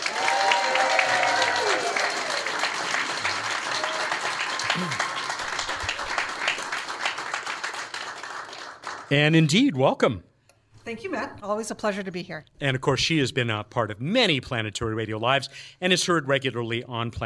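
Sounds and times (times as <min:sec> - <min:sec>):
crowd applauding a planetary scientist at a live space-science event: 0:00.0 - 0:09.6
speech: 0:09.1 - 0:10.3, 0:10.9 - 0:17.2.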